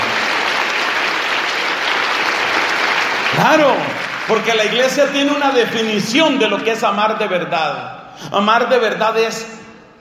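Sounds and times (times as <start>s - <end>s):
group applauding: 0.0s - 6.0s
speech: 3.4s - 9.6s.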